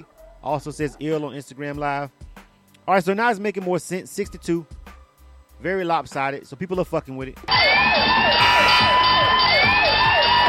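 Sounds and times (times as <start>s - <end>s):
speech: 0.0s - 2.3s, 2.9s - 4.9s, 5.6s - 9.4s
timer alarm going off: 7.5s - 10.4s.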